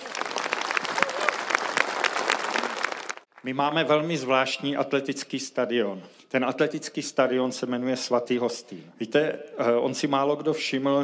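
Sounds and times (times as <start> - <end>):
crowd applauding: 0.0 - 3.5
speech: 3.4 - 11.0.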